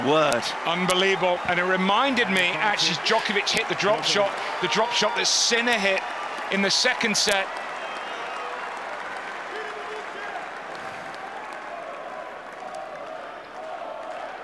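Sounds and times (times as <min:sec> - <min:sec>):
speech: 0:00.0 - 0:07.6
crowd clapping and cheering: 0:00.0 - 0:14.4.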